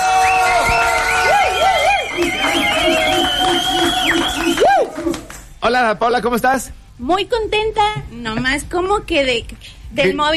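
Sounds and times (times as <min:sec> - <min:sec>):
applause: 0:00.0 - 0:05.6
speech: 0:05.7 - 0:10.3.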